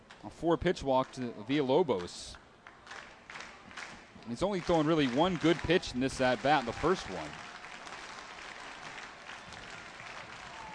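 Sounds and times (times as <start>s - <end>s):
speech: 0.2s - 2.4s, 4.2s - 7.4s
baseball crowd cheering and applauding: 2.8s - 10.7s.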